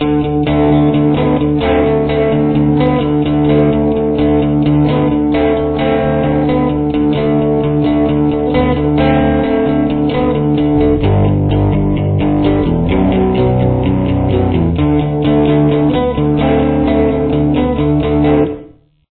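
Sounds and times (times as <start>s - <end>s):
guitar with chorus effect: 0.0s - 19.0s.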